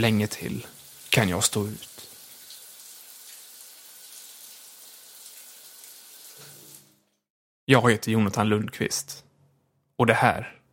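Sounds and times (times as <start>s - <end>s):
speech: 0.0s - 2.1s, 7.7s - 9.2s, 10.0s - 10.6s
hot shower water running: 0.0s - 7.2s.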